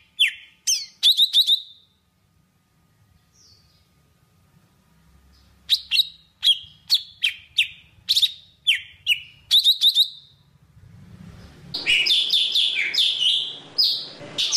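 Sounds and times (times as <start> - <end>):
Java sparrow singing: 0.0 - 2.0, 5.7 - 10.4, 11.8 - 14.5.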